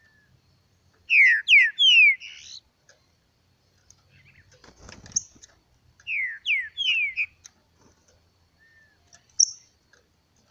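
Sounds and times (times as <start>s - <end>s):
green-winged saltator song of downslurred whistled notes: 0.0s - 0.4s, 1.1s - 2.6s, 6.0s - 7.5s, 8.5s - 9.7s.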